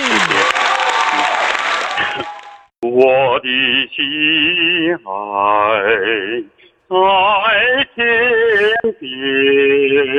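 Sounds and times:
audience applause: 0.0s - 2.7s
speech: 3.0s - 10.1s.

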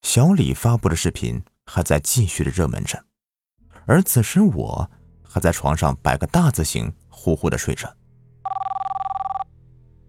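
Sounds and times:
speech: 0.1s - 3.1s, 3.9s - 8.0s
mobile phone ringtone: 8.4s - 9.5s.

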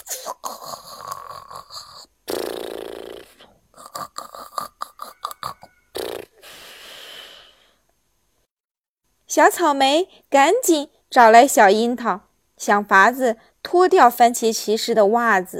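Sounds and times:
loud snoring: 0.4s - 7.5s
speech: 9.4s - 15.5s.

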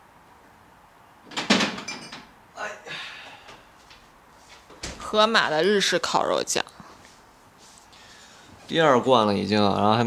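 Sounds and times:
refrigerator door opening and closing: 1.2s - 2.3s, 4.8s - 5.1s
speech: 5.1s - 6.7s, 8.7s - 10.0s.

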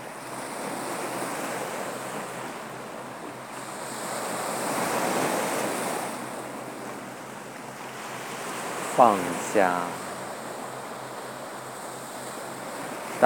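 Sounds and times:
ocean surf washing onto the shore: 0.0s - 13.2s
speech: 9.0s - 10.0s.

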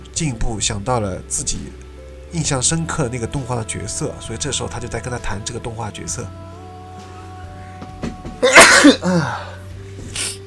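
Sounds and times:
speech: 0.2s - 6.6s, 8.8s - 9.5s
person sneezing: 8.4s - 9.5s, 10.1s - 10.4s.

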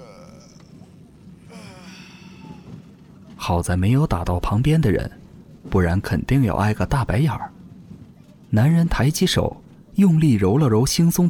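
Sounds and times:
long yawn: 0.0s - 2.9s
speech: 3.4s - 7.5s, 8.5s - 11.2s.

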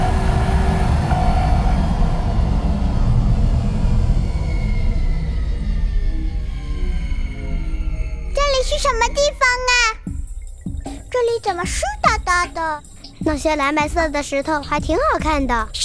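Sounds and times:
spaceship out of energy making an automatic landing: 0.0s - 9.5s
speech: 11.4s - 15.8s.

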